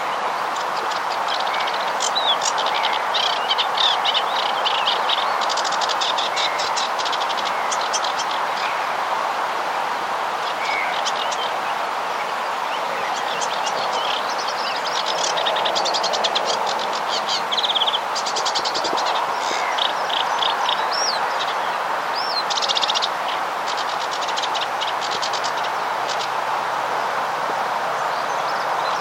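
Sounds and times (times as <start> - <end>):
phragmites reeds at a pond: 0.0 - 29.0.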